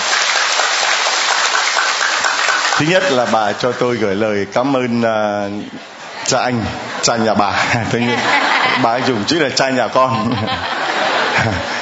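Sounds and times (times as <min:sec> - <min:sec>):
applause: 0:00.0 - 0:03.8
speech: 0:02.8 - 0:10.7, 0:11.4 - 0:11.7
laughter: 0:06.2 - 0:11.7.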